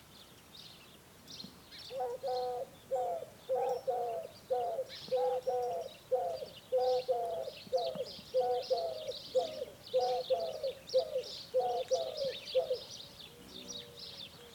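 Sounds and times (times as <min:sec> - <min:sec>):
common wood pigeon cooing: 0:01.9 - 0:14.5.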